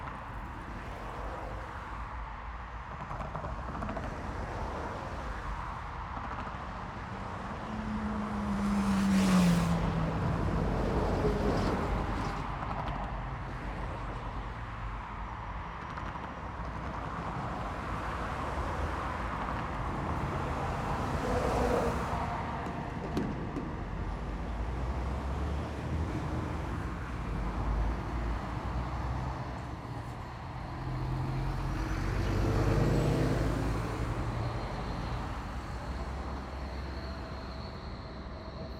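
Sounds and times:
city street traffic with cars: 0.0s - 38.7s
city tram: 0.0s - 38.7s.

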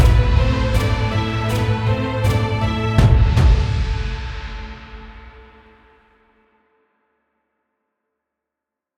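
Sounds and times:
double bass: 0.0s - 4.2s
choir: 0.0s - 5.4s
cello: 0.0s - 5.6s
strings: 0.0s - 6.0s.

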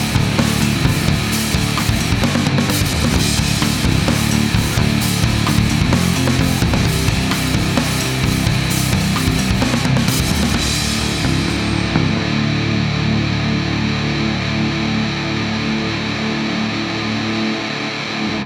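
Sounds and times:
rock menu music track without pad: 0.0s - 18.4s.

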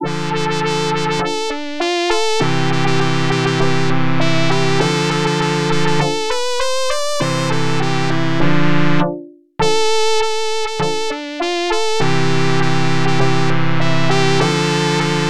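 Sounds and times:
OPL2 FM synth sea shanty: 0.0s - 15.2s.

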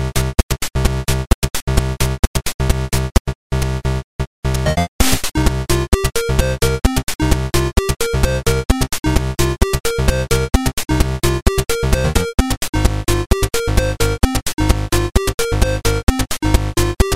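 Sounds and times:
techno house music on a PSG sound chip: 0.0s - 17.1s.

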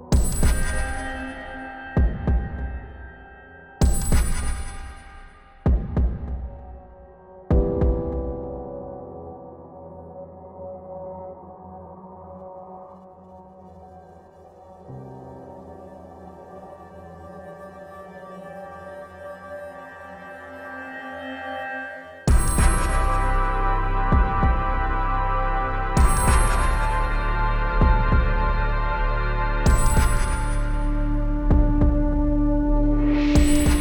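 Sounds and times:
ambient soundscape: 0.0s - 33.7s.

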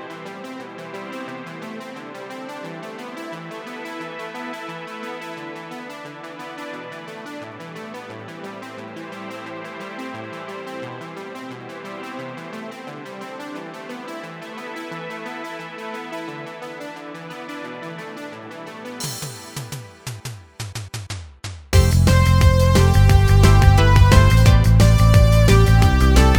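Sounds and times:
game music: 21.8s - 26.3s.

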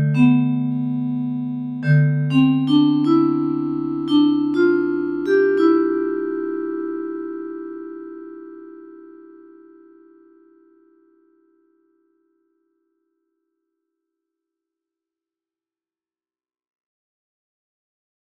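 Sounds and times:
bells ringing: 0.0s - 9.9s.

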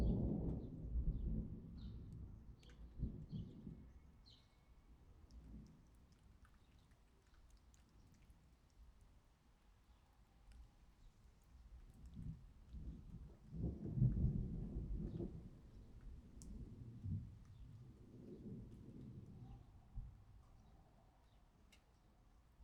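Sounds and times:
thunder: 0.0s - 3.8s, 12.9s - 15.7s, 16.4s - 20.2s.

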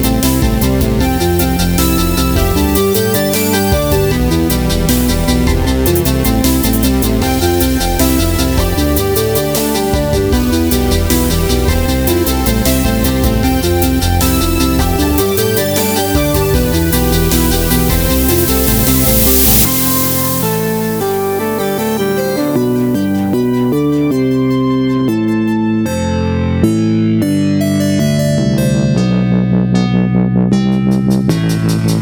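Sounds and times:
harmonic upbeat synth music: 0.0s - 31.9s.

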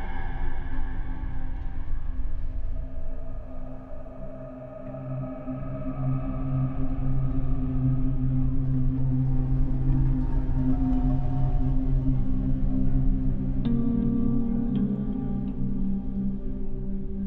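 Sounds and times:
dark ambience: 0.0s - 17.2s.

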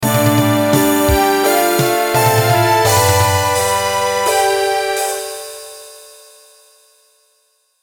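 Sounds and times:
fanfare: 0.2s - 5.4s.

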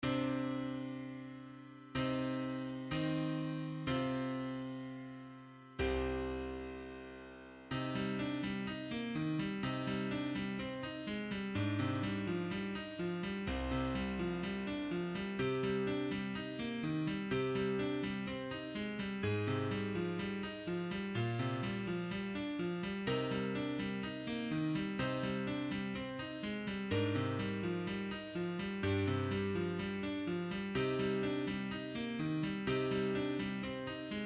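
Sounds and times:
piano: 0.0s - 34.2s.

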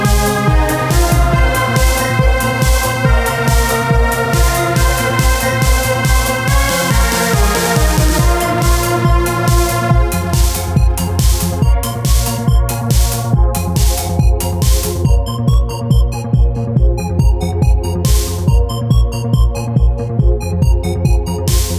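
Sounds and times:
trance music with sky theme: 0.0s - 21.7s.

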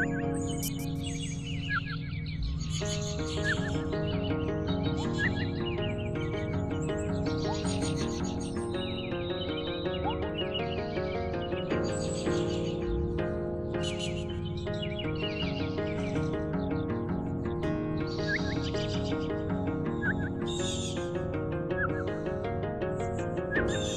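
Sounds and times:
synth: 0.0s - 11.4s, 17.8s - 23.9s
birds: 0.0s - 23.9s
wind: 0.0s - 23.9s.

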